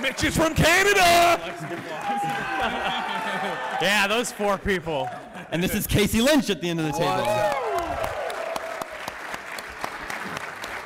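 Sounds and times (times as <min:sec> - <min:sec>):
live studio audience applause at PAX East: 0:00.0 - 0:04.4, 0:07.0 - 0:10.8
speech: 0:00.0 - 0:07.6
laughter: 0:02.0 - 0:06.3.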